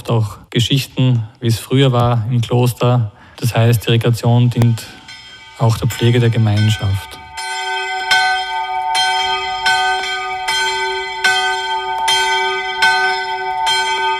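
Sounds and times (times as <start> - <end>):
speech: 0.1 - 5.0, 5.6 - 7.2
monastery convent bell ringing: 4.6 - 14.1.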